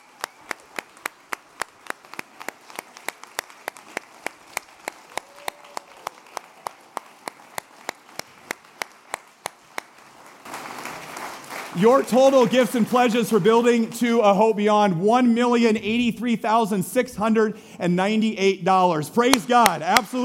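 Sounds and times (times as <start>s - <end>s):
audience applause: 0.0s - 13.8s
speech: 11.8s - 20.2s.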